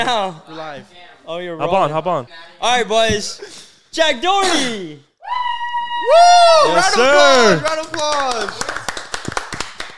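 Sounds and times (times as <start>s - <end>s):
speech: 0.0s - 8.7s
round of applause: 6.6s - 9.9s.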